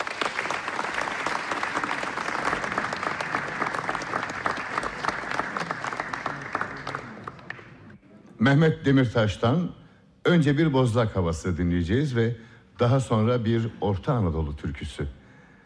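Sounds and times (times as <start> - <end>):
audience applause: 0.0 - 8.0
speech: 8.4 - 15.2.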